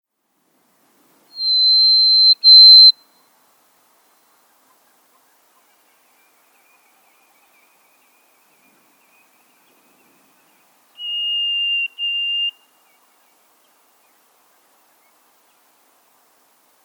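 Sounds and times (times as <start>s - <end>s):
Harris's sparrow whistling clear steady notes: 1.4s - 3.1s, 11.0s - 12.7s.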